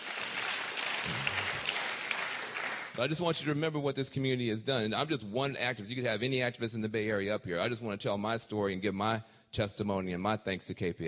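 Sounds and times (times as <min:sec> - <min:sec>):
audience clapping for the Books Not Bars campaign at a community gathering: 0:00.0 - 0:03.3
speech: 0:03.0 - 0:11.0.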